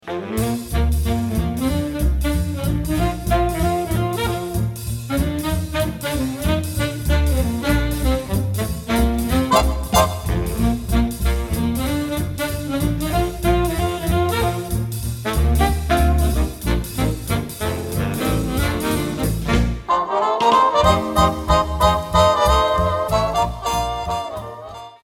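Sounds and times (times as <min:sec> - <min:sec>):
swing music: 0:00.0 - 0:25.0.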